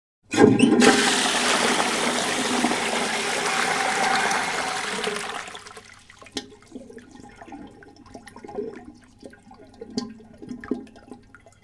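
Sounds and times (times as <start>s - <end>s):
toilet flushing: 0.3s - 8.8s.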